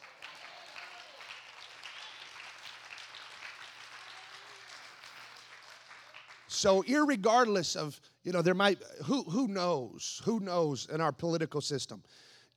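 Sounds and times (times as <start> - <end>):
audience clapping: 0.0 - 6.9
speech: 6.5 - 12.5.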